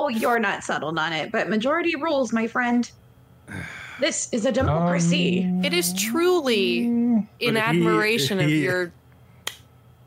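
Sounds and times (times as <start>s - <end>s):
speech: 0.1s - 9.0s
hand claps: 9.4s - 9.7s.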